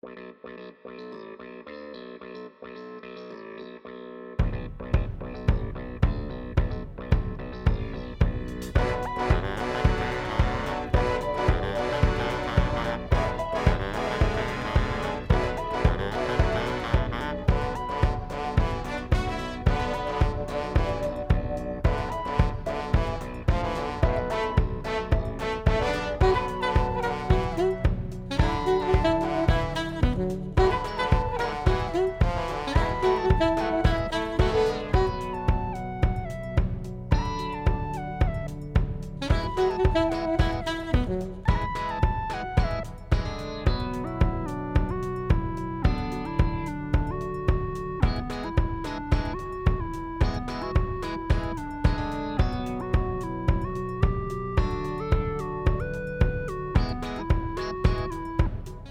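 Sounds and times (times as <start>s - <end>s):
main theme music with saxophone: 4.4s - 58.8s.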